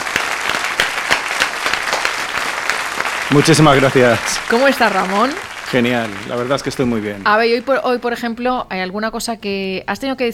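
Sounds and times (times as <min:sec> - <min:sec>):
audience applause: 0:00.0 - 0:08.2
speech: 0:03.3 - 0:10.3.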